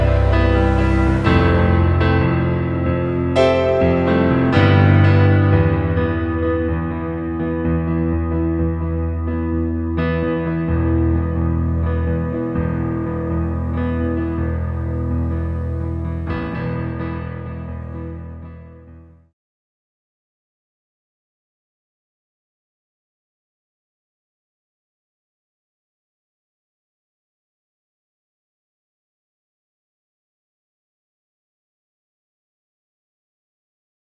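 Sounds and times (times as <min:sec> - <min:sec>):
piano playing: 0:00.0 - 0:19.2.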